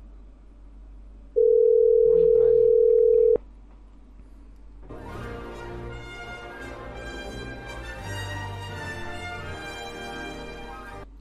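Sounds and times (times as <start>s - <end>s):
telephone line tone while a number is dialed: 1.4s - 3.4s.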